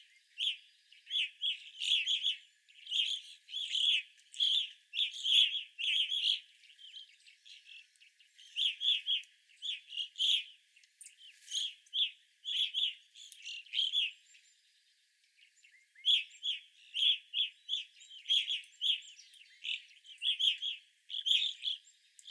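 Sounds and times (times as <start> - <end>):
evening grosbeaks chirping: 0.0 - 22.2.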